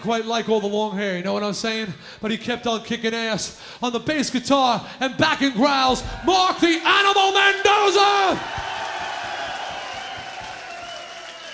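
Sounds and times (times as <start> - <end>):
speech: 0.0 - 8.7
large concert crowd cheering and clapping: 5.9 - 11.5.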